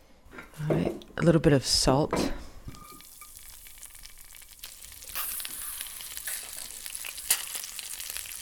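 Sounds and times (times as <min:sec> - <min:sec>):
speech: 0:00.6 - 0:02.4
frozen mealworms frying in oil in a pan: 0:02.7 - 0:08.3.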